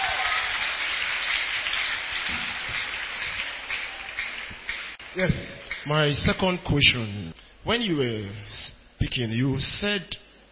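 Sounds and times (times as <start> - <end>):
audience clapping hands: 0.0 - 6.4
speech: 5.2 - 10.2.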